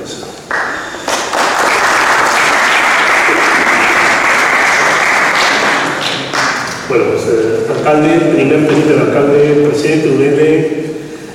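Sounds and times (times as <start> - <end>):
audience applause: 0.5 - 6.9
speech: 6.9 - 10.9.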